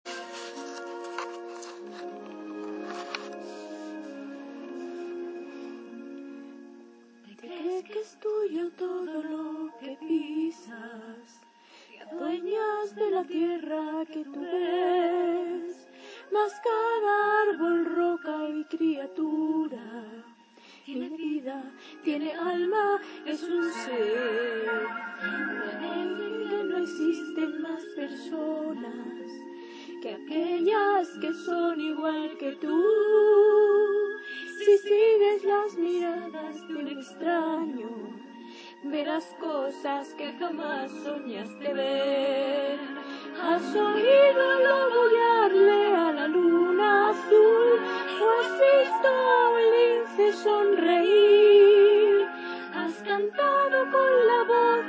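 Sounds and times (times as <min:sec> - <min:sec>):
person singing: 0:07.3 - 0:20.3, 0:20.9 - 0:54.8.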